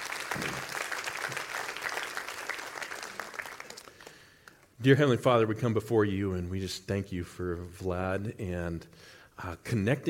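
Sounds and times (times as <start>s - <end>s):
audience applauding: 0.0s - 4.6s
speech: 4.8s - 10.0s.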